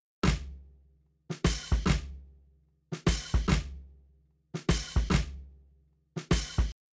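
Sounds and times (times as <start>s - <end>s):
shuffle drums: 0.2s - 0.5s, 1.3s - 2.2s, 3.0s - 3.8s, 4.6s - 5.4s, 6.2s - 6.8s.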